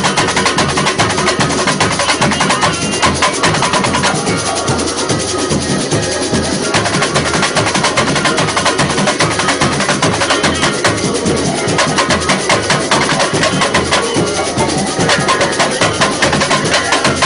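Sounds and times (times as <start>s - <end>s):
tamborim playing at a technical rehearsal in the Sambadrome: 0.0s - 17.2s.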